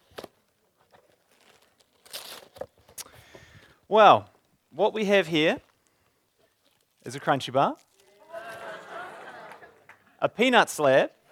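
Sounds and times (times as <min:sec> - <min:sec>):
crinkly wrapping paper rustling and tearing as a gift package is pulled open: 0:00.0 - 0:03.0, 0:05.6 - 0:08.5
speech: 0:03.9 - 0:05.7, 0:07.1 - 0:07.9, 0:10.2 - 0:11.2
laughter: 0:08.1 - 0:10.2.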